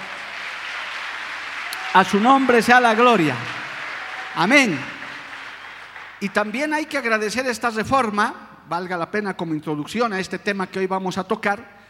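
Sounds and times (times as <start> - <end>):
audience clapping: 0.0 - 7.4
speech: 2.0 - 3.6, 4.4 - 4.9, 6.2 - 11.8.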